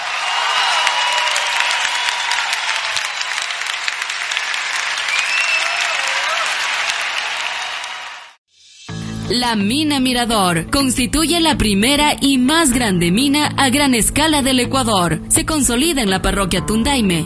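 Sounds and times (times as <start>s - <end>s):
audience applause: 0.0s - 8.4s
faint cheering: 0.0s - 8.4s
speech: 9.3s - 17.2s.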